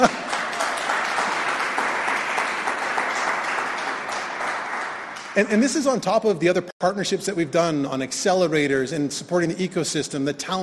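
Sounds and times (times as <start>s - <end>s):
speech: 0.0s - 0.2s, 5.4s - 10.6s
audience clapping: 0.0s - 6.0s.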